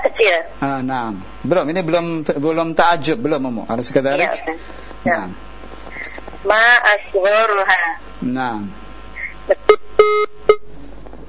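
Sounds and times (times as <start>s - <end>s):
speech: 0.2s - 5.5s, 6.4s - 8.8s
telephone line beeping after a caller is cut off: 9.6s - 10.7s.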